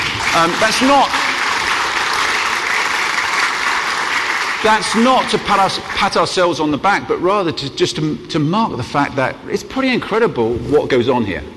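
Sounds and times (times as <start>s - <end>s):
audience applause: 0.0s - 6.5s
speech: 0.4s - 1.2s, 4.6s - 11.5s.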